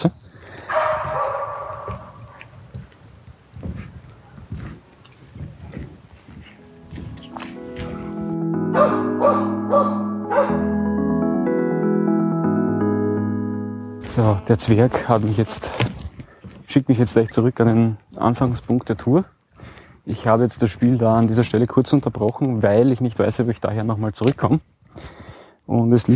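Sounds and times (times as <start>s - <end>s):
speech: 0.0s - 0.7s, 14.5s - 16.0s, 16.7s - 19.4s, 20.0s - 26.1s
dogs barking: 0.7s - 2.4s, 8.7s - 10.7s
steady melodic tones: 6.5s - 14.8s.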